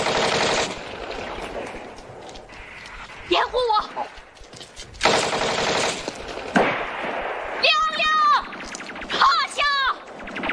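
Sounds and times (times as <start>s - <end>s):
machine-gun and rifle fire: 0.0s - 1.4s, 5.0s - 10.5s.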